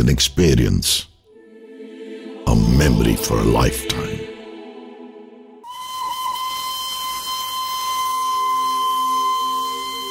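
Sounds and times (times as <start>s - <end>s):
speech: 0.0s - 1.1s, 2.5s - 4.2s
toy train steam locomotive whistle: 5.6s - 10.0s.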